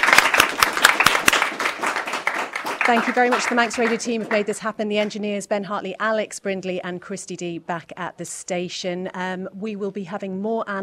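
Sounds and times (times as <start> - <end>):
sparse applause from a live studio audience: 0.0 - 4.6
speech: 2.9 - 10.8.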